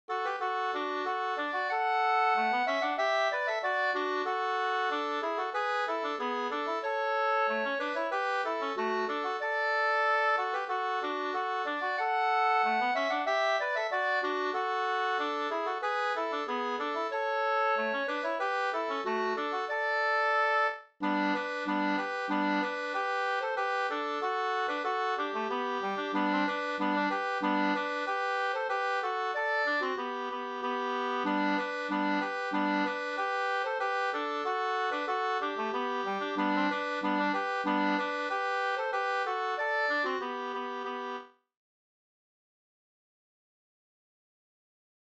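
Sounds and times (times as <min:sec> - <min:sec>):
polka music: 0:00.1 - 0:41.3.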